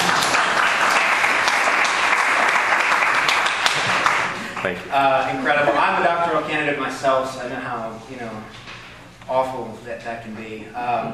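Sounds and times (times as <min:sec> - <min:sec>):
audience applause for a musician who finished his doctorate at Juilliard: 0:00.0 - 0:04.8
speech: 0:04.6 - 0:08.7, 0:09.3 - 0:11.1.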